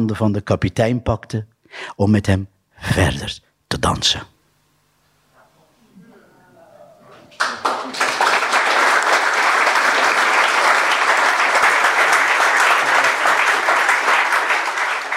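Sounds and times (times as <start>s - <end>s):
speech: 0.0s - 4.3s
enthusiastic audience applause: 7.3s - 15.1s.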